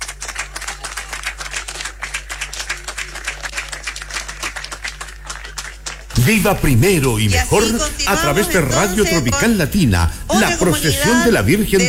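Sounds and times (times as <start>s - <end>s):
crowd applause at religious procession: 0.0s - 9.4s
low constant hum: 3.7s - 11.8s
speech: 6.2s - 11.8s.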